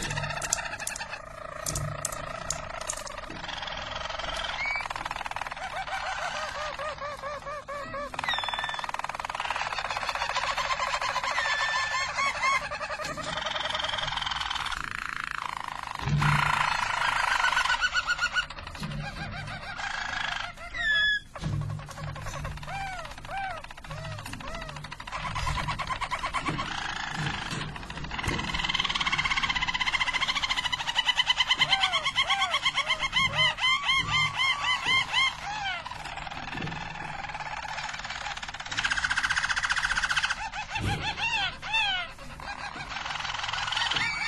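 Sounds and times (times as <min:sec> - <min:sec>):
Harz Roller canary singing rolling trills: 0:00.0 - 0:44.2.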